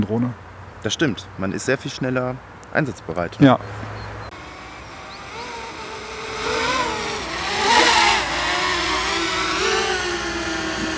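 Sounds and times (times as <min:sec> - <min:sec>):
speech: 0:00.0 - 0:03.9
small drone flying: 0:04.2 - 0:10.9.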